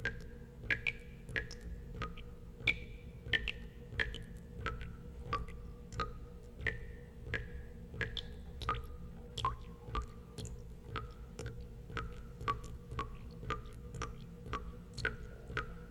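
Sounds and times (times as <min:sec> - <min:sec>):
water running in small drips: 0:00.0 - 0:15.9.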